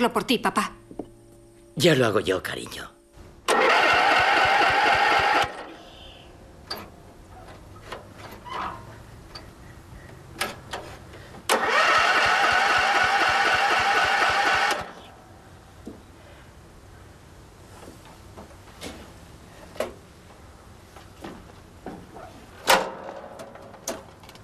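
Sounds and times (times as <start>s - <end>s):
speech: 0.0s - 0.8s, 1.8s - 3.0s
old lawnmower engine failing to start: 3.5s - 5.7s, 10.4s - 15.0s.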